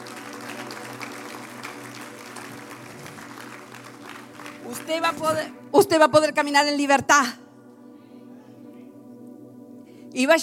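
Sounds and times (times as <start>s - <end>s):
audience applause: 0.0s - 5.4s
speech: 4.7s - 7.4s, 10.2s - 10.4s.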